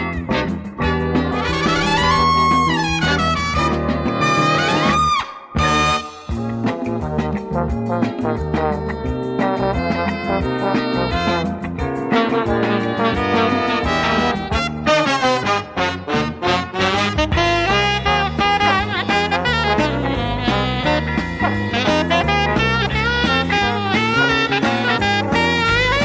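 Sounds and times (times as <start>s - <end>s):
instrumental ensemble playing: 0.0s - 26.0s.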